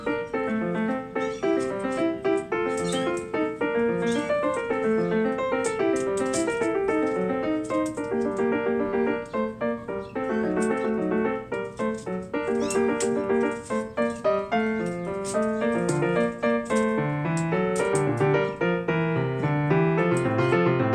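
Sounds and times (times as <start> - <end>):
faint clicks and rustles of kitten play: 0.0 - 20.8
domestic cat kitten meowing: 0.9 - 5.1, 12.5 - 13.0.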